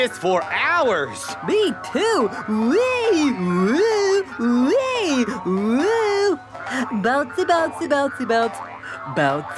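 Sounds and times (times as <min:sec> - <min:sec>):
speech: 0:00.0 - 0:09.5
cartoon boing effects for bouncing on a bouncy house: 0:02.8 - 0:09.5.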